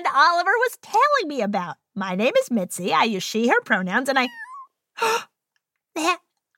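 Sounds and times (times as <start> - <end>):
speech: 0.2 - 4.4, 5.0 - 5.3, 6.0 - 6.2
very tiny kitten meow: 4.3 - 4.6.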